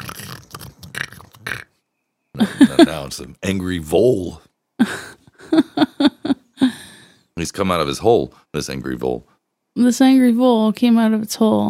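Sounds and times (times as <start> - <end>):
voice imitating a high-pitched pig snort: 0.0 - 1.8
laughter: 2.4 - 3.1, 4.8 - 6.8
speech: 2.4 - 5.0, 7.5 - 11.6.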